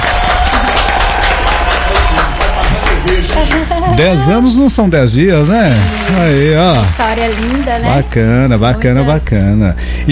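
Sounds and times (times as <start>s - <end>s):
audience applause: 0.0s - 3.7s, 5.5s - 8.1s
speech: 3.4s - 10.1s.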